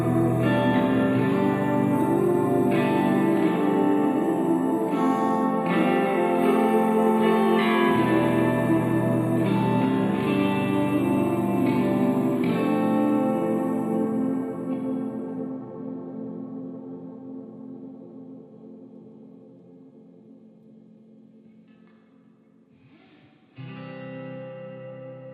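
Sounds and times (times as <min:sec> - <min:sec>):
voices: 0:00.0 - 0:16.1
guitar: 0:00.0 - 0:25.3.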